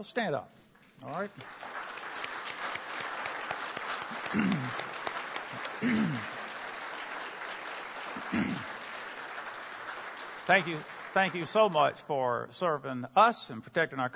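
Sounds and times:
speech: 0.0 - 1.7, 4.3 - 4.8, 5.5 - 6.4, 8.3 - 8.7, 10.5 - 14.1
audience applause: 1.1 - 11.9.

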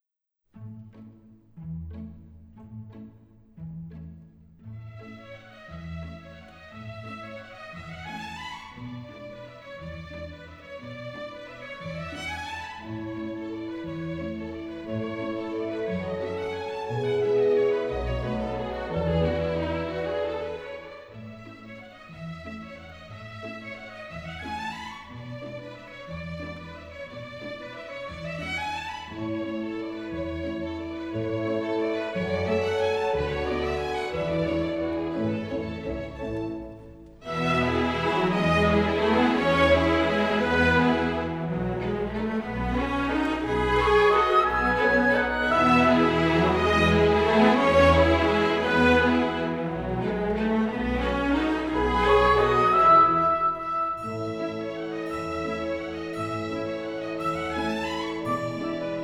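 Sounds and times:
ballet warm-up music: 5.8 - 23.8, 24.4 - 59.0.

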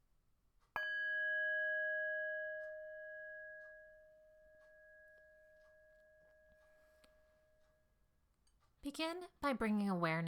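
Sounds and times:
meditation bell ringing: 0.8 - 8.1
speech: 8.8 - 10.2.

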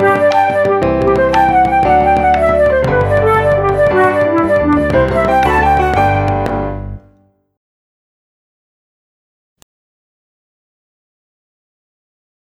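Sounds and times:
compound time travelling step exam music: 0.0 - 7.0.

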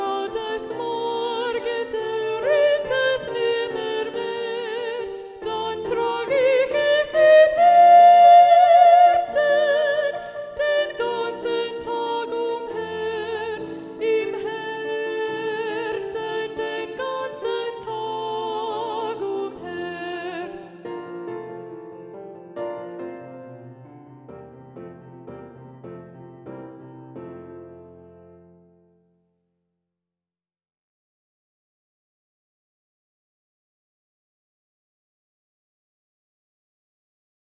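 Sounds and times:
soprano-predominant soprano and alto voices singing: 0.0 - 23.4.

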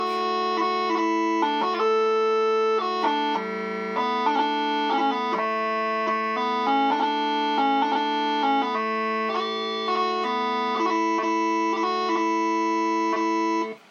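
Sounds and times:
bagpipe tunes: 0.0 - 13.8.

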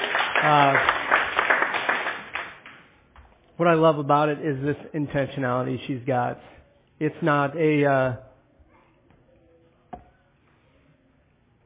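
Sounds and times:
audience clapping: 0.0 - 3.0
speech: 0.4 - 0.9, 3.6 - 8.3.

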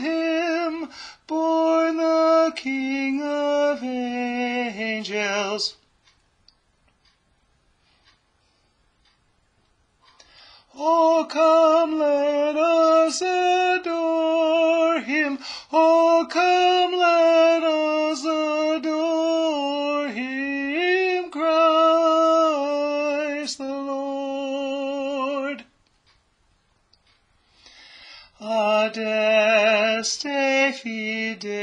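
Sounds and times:
tenor singing: 0.0 - 5.8, 10.7 - 25.8, 28.4 - 31.6.

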